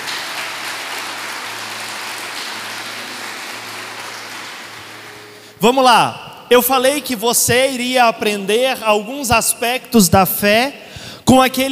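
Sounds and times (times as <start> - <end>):
audience applauding loudly: 0.0 - 5.6
speech: 5.6 - 11.7.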